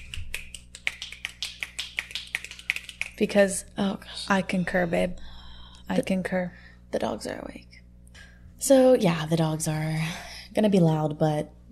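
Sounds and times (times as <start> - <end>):
finger snapping: 0.0 - 3.2
speech: 3.2 - 5.3, 5.9 - 7.7, 8.6 - 11.6.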